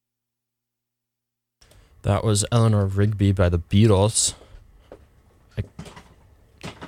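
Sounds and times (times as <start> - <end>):
speech: 2.0 - 4.4
chair being moved and sat in: 5.6 - 6.8.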